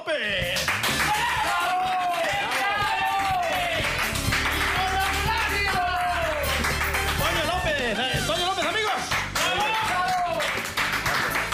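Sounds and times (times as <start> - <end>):
small group clapping: 0.5 - 11.5.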